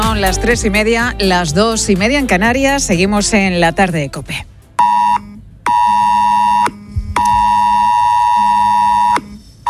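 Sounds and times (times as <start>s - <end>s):
speech: 0.2s - 4.5s
mobile phone emergency alert tone: 4.8s - 9.6s.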